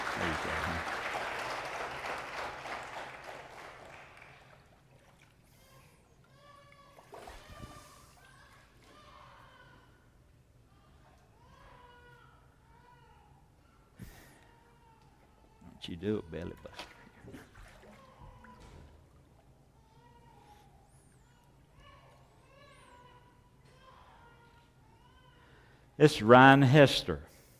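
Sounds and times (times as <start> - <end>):
audience applause: 0.0 - 4.7
speech: 0.2 - 1.0, 15.8 - 17.4, 26.0 - 27.3.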